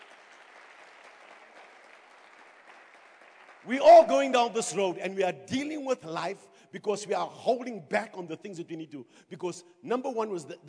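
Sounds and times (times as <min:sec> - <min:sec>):
crowd clapping: 0:00.0 - 0:04.5
speech: 0:03.6 - 0:10.6.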